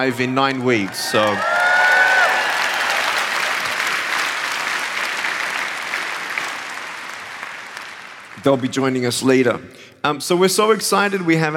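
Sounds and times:
speech: 0.0s - 1.6s, 8.4s - 11.5s
audience applause: 0.0s - 8.7s.

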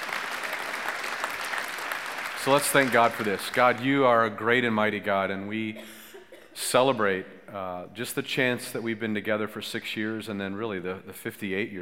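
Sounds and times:
audience clapping: 0.0s - 4.0s
speech: 2.4s - 6.0s, 6.6s - 11.8s.

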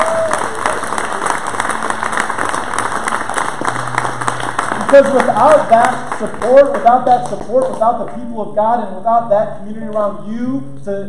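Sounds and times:
audience applause: 0.0s - 8.1s
speech: 4.9s - 11.0s.

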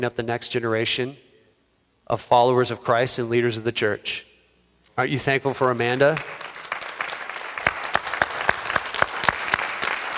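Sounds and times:
speech: 0.0s - 1.3s, 2.1s - 4.3s, 5.0s - 6.5s
audience applause: 6.1s - 10.1s.

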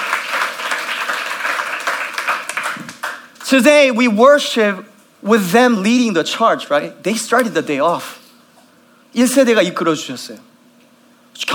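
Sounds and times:
audience applauding: 0.0s - 3.4s
speech: 3.5s - 8.2s, 9.1s - 10.5s, 11.4s - 11.5s.

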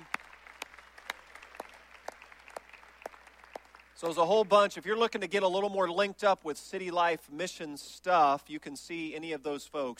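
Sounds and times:
audience applause: 0.0s - 4.7s
speech: 4.0s - 9.9s.

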